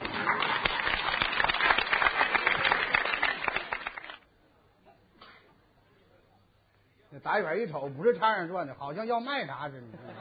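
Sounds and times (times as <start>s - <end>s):
audience applause: 0.0s - 4.2s
speech: 7.3s - 10.1s.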